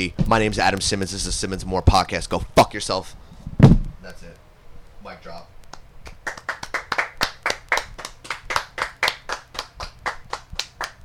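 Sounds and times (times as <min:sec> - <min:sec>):
speech: 0:00.0 - 0:05.6
slow hand clapping: 0:05.7 - 0:11.0.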